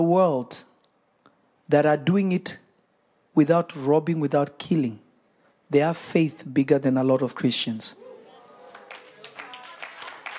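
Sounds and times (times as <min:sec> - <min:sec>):
speech: 0:00.0 - 0:00.7, 0:01.7 - 0:02.6, 0:03.4 - 0:05.0, 0:05.7 - 0:08.0
audience clapping: 0:08.3 - 0:10.3.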